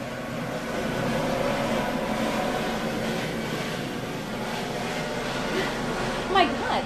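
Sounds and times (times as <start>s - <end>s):
low-flying Coast Guard aircraft passing overhead: 0.0s - 6.8s.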